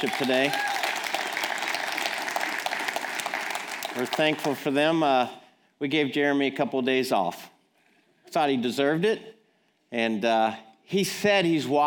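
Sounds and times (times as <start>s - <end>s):
speech: 0.0s - 0.7s, 4.0s - 7.5s, 8.3s - 11.8s
church congregation applause: 0.0s - 5.1s.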